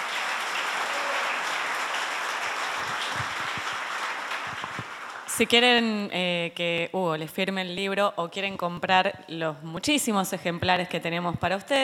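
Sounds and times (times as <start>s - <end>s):
audience applause: 0.0s - 5.3s
speech: 5.4s - 11.8s.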